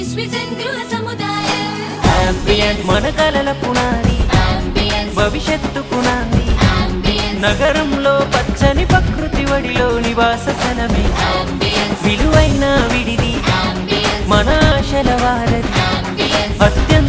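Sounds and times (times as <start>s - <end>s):
ambient music: 0.8s - 17.0s.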